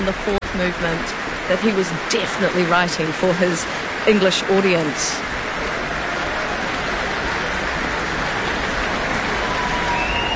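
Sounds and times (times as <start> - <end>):
speech: 0.0 - 5.7
large crowd applauding after concert: 5.4 - 10.3
audience whistles: 9.6 - 10.3.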